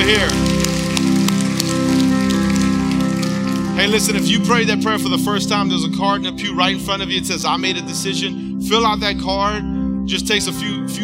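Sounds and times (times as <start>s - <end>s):
audience applause: 0.0s - 4.6s
sustained low musical tone: 0.0s - 11.0s
speech: 0.1s - 0.5s, 3.8s - 11.0s.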